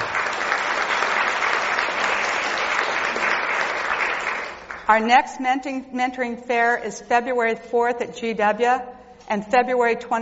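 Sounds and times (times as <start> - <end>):
audience round of applause: 0.0 - 4.9
speech: 4.9 - 10.2.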